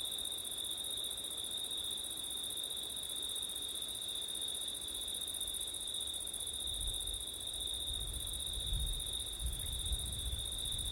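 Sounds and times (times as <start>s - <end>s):
cricket chorus trilling: 0.2s - 10.9s
wind gusts rumbling: 7.9s - 10.9s.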